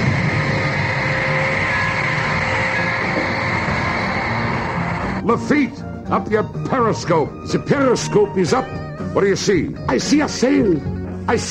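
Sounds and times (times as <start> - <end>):
submarine engines running: 0.0 - 5.3
speech: 5.3 - 11.4.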